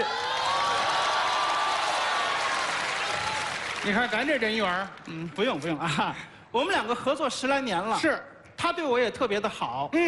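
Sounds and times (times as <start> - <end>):
audience applause: 0.0 - 5.8
speech: 3.8 - 10.0.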